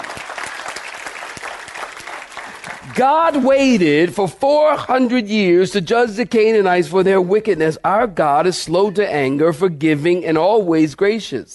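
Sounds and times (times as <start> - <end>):
audience clapping: 0.0 - 4.0
speech: 2.8 - 11.5.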